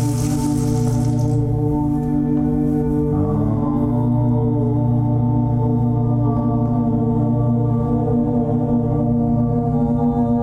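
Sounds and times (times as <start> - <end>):
rain stick rattle: 0.0 - 1.5
tambura drone: 0.0 - 10.4.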